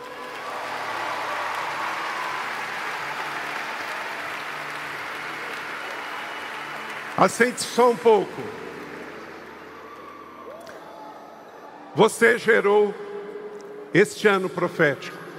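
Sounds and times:
audience applause: 0:00.0 - 0:11.2
speech: 0:07.2 - 0:08.7, 0:12.0 - 0:13.0, 0:13.9 - 0:15.2.

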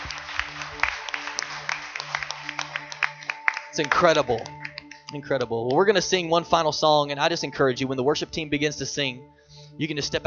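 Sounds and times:
audience clapping hands: 0:00.0 - 0:05.8
speech: 0:03.8 - 0:10.2.

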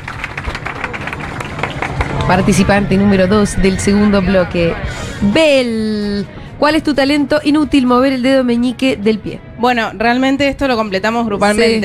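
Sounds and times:
audience applause: 0:00.0 - 0:02.7
speech: 0:02.3 - 0:11.8.

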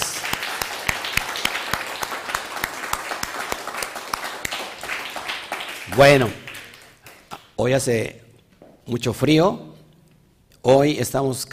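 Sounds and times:
audience applause: 0:00.0 - 0:07.3
speech: 0:05.9 - 0:06.4, 0:07.6 - 0:08.2, 0:08.9 - 0:09.7, 0:10.6 - 0:11.5.

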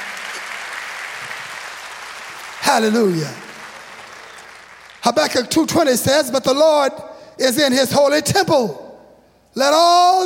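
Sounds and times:
audience clapping hands: 0:00.0 - 0:05.5
speech: 0:02.7 - 0:03.4, 0:05.0 - 0:08.8, 0:09.6 - 0:10.2.

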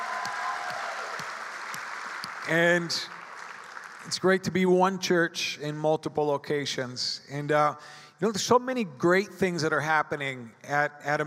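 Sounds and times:
audience applauding and cheering: 0:00.0 - 0:04.3
speech: 0:02.5 - 0:03.2, 0:04.1 - 0:11.2.

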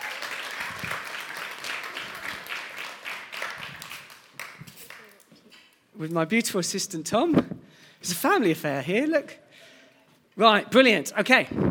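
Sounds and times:
audience applause: 0:00.0 - 0:05.2
speech: 0:06.0 - 0:09.4, 0:10.4 - 0:11.6.

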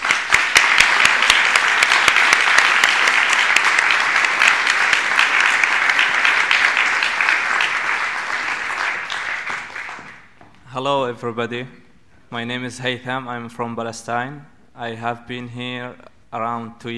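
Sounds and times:
audience applause welcoming writers at the Bristol Refugee Festival: 0:00.0 - 0:10.4
speech: 0:10.8 - 0:16.9.

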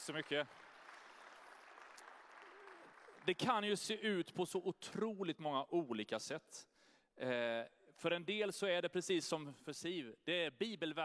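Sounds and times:
speech: 0:00.0 - 0:00.7, 0:03.2 - 0:11.0
audience applause: 0:00.0 - 0:03.5.

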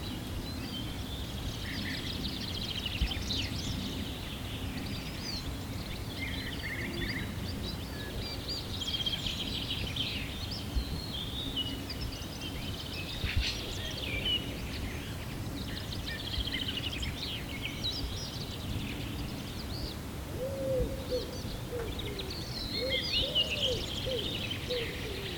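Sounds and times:
birds twittering: 0:00.0 - 0:25.3
low noise: 0:00.0 - 0:25.3.

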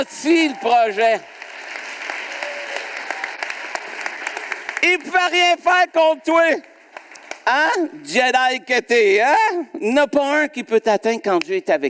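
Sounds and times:
speech: 0:00.0 - 0:01.4, 0:04.8 - 0:06.7, 0:07.4 - 0:11.8
audience applause: 0:00.0 - 0:05.5.

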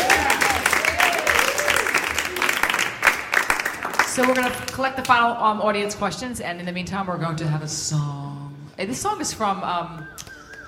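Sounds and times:
audience applause: 0:00.0 - 0:04.6
speech: 0:04.2 - 0:10.3.

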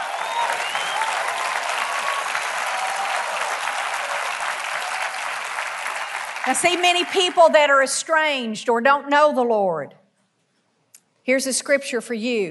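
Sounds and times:
audience applause: 0:00.0 - 0:07.7
speech: 0:06.4 - 0:10.0, 0:11.2 - 0:12.4.

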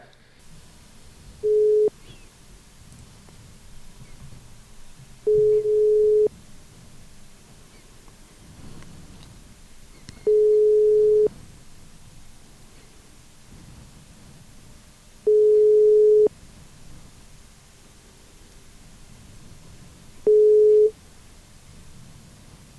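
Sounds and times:
faint hiss: 0:00.0 - 0:22.7
ringback tone of an unanswered telephone call: 0:00.5 - 0:03.2, 0:04.2 - 0:06.6, 0:10.2 - 0:11.4, 0:15.2 - 0:16.3, 0:20.2 - 0:21.0.

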